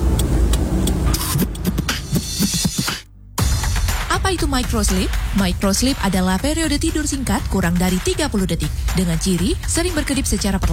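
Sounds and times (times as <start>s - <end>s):
car being driven, engine and road rumble: 0.0s - 10.7s
speech: 4.2s - 10.7s.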